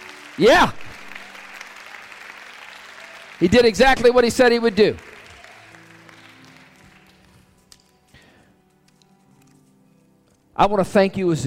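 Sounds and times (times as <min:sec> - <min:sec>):
audience clapping hands in praise: 0:00.0 - 0:08.0
speech: 0:00.4 - 0:00.8, 0:03.4 - 0:05.1, 0:10.6 - 0:11.4.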